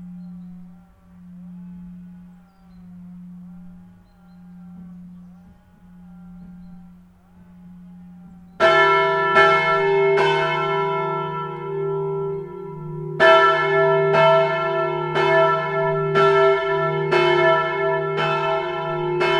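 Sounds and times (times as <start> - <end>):
bells outdoors: 8.5 - 19.3.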